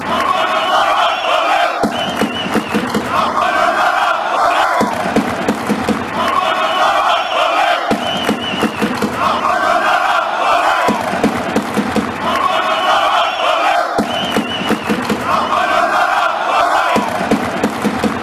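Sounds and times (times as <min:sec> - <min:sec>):
chanting: 0:00.0 - 0:05.5, 0:06.1 - 0:17.9.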